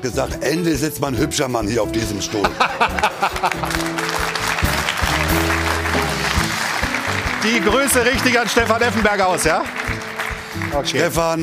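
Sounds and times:
speech: 0.0 - 4.6, 7.4 - 11.4
laughter: 2.3 - 4.2
studio audience applause: 2.8 - 11.4.

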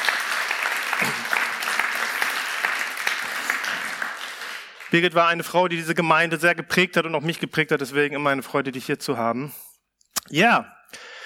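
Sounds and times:
audience applause: 0.0 - 5.0
speech: 4.9 - 9.6, 10.3 - 11.1.

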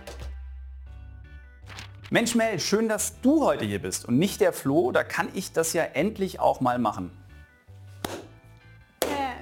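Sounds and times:
speech: 2.1 - 7.2
one person clapping hands: 8.0 - 8.4, 9.0 - 9.3.

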